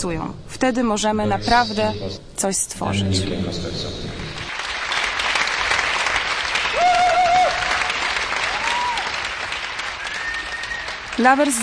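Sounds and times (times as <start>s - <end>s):
speech: 0.0s - 4.2s, 11.2s - 11.6s
theatre audience applauding: 4.3s - 11.6s.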